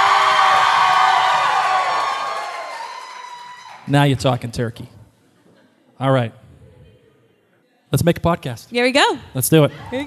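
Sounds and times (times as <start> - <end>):
live audience cheering and whooping inside the Colony House in Newport: 0.0 - 3.9
speech: 3.9 - 5.0, 6.0 - 6.4, 7.9 - 10.0.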